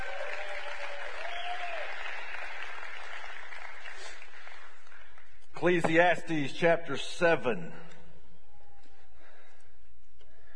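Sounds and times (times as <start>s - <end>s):
audience clapping hands for tithes and offerings: 0.0s - 5.8s
speech: 5.6s - 7.8s.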